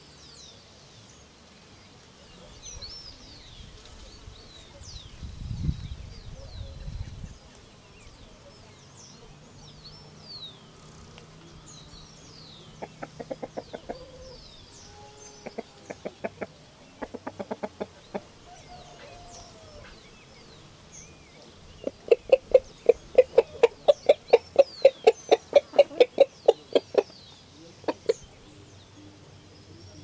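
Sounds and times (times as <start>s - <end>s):
high thin bird calls: 5.9s - 30.0s
chicken clucking: 12.6s - 14.4s, 15.4s - 20.0s, 21.4s - 28.4s.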